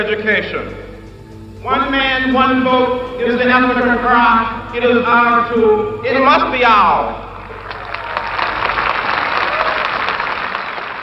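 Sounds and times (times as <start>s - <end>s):
speech: 0.0s - 0.9s, 1.6s - 7.2s
crowd applause: 7.3s - 11.0s.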